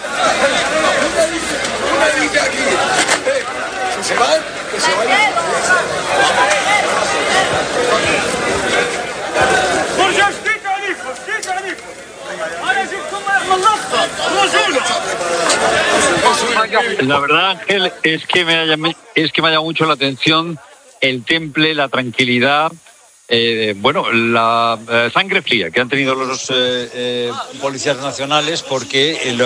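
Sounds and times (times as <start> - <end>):
dense agitated crowd roaring: 0.0 - 18.1
many voices shouting and yelling: 0.0 - 29.4
speech: 16.7 - 29.4.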